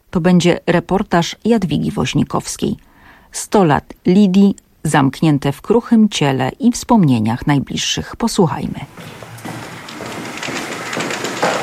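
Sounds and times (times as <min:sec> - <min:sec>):
speech: 0:00.1 - 0:09.6
rain pouring: 0:08.9 - 0:11.6.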